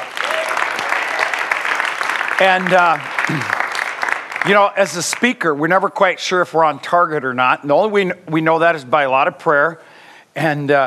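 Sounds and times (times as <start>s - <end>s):
crowd applauding for the worship band: 0.0s - 5.2s
speech: 2.4s - 3.6s, 4.4s - 10.8s.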